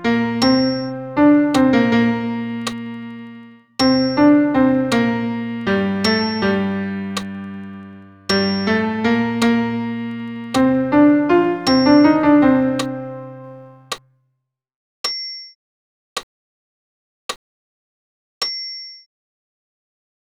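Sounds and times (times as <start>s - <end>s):
piano accompaniment for a Sanctus: 0.0s - 14.0s.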